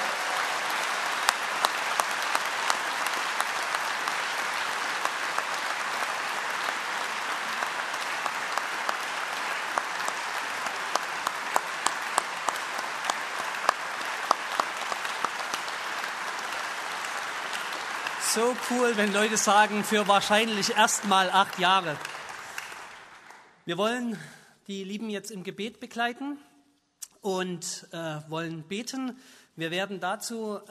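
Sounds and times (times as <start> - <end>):
audience applause: 0.0 - 23.6
speech: 18.3 - 22.1, 23.7 - 26.5, 27.2 - 30.6.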